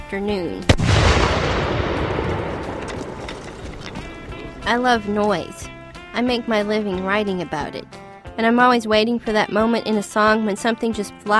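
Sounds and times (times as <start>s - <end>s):
speech: 0.1s - 2.5s, 4.6s - 11.3s
ceremonial cannon firing: 0.7s - 4.8s.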